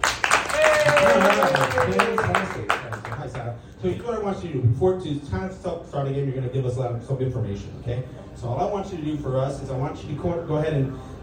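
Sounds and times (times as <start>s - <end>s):
audience clapping: 0.0s - 3.5s
speech: 3.8s - 11.2s.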